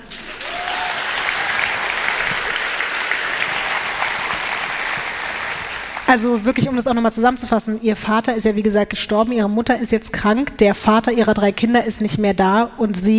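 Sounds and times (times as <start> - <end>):
audience applause: 0.0 - 6.2
speech: 6.1 - 13.1.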